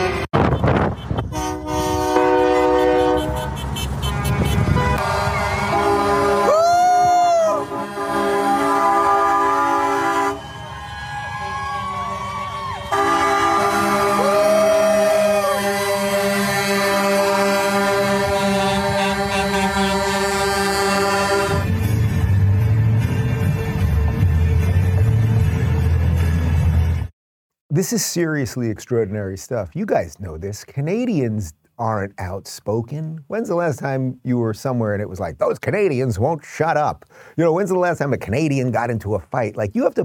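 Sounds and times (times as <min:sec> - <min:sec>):
convoy of trucks and cars passing: 0:00.0 - 0:27.1
speech: 0:27.8 - 0:40.0.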